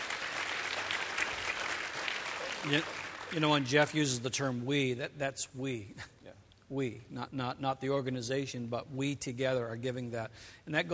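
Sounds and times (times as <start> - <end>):
church congregation applauding during a service: 0.0 - 3.9
speech: 2.6 - 6.1, 6.7 - 10.9.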